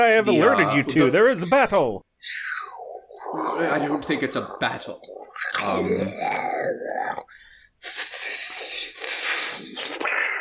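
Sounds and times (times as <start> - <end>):
speech: 0.0 - 2.5, 3.3 - 8.1
dragon growling sound effects: 2.2 - 7.3.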